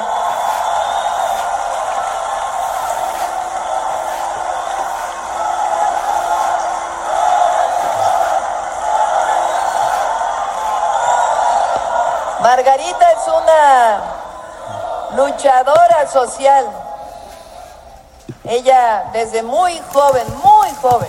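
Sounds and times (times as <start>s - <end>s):
audience applause: 0.0s - 15.4s, 19.8s - 21.0s
speech: 12.6s - 14.1s, 15.2s - 16.8s, 18.5s - 21.0s.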